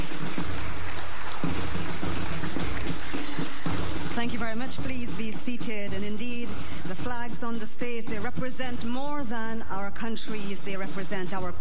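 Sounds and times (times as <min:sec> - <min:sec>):
audience applause: 0:00.0 - 0:04.2
speech: 0:04.4 - 0:11.6.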